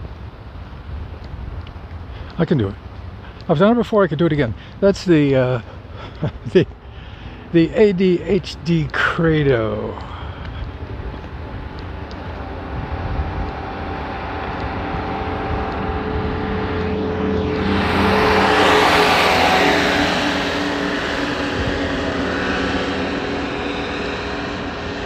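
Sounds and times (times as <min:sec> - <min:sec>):
speech: 0:02.4 - 0:02.9, 0:03.5 - 0:06.8, 0:07.5 - 0:10.1
lawnmower speeding by: 0:10.2 - 0:25.0.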